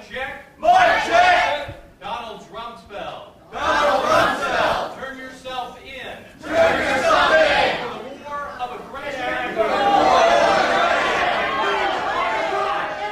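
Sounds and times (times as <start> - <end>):
protesters shouting and interrupting among an audience at a talk: 0.6 - 1.6, 3.5 - 4.9, 6.4 - 8.0, 9.1 - 13.0
crowd chatter: 3.5 - 5.0, 6.3 - 13.0.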